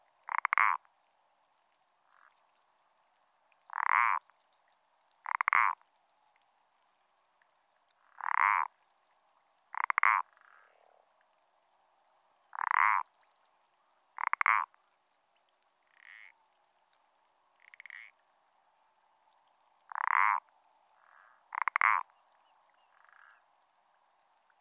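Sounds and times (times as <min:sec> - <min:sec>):
common parsley frog croaking: 0:00.0 - 0:00.8, 0:03.7 - 0:04.3, 0:05.2 - 0:05.8, 0:08.0 - 0:08.7, 0:09.7 - 0:10.8, 0:12.5 - 0:13.1, 0:14.2 - 0:14.8, 0:15.9 - 0:16.4, 0:17.6 - 0:18.2, 0:19.9 - 0:22.1, 0:22.9 - 0:23.4.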